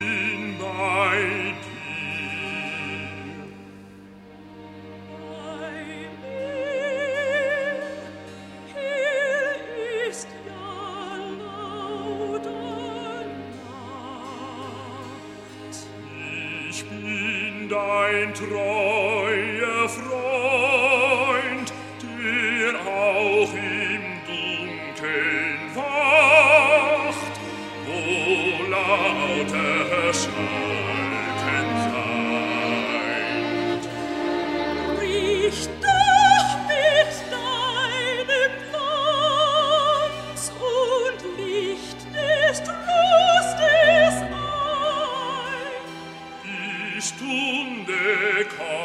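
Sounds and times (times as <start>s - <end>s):
recitative singing: 0.0s - 48.8s.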